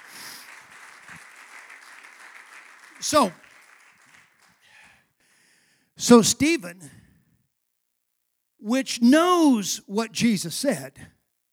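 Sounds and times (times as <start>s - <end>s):
audience clapping: 0.0s - 4.9s
speech: 3.0s - 3.4s, 6.1s - 7.0s, 8.6s - 11.2s.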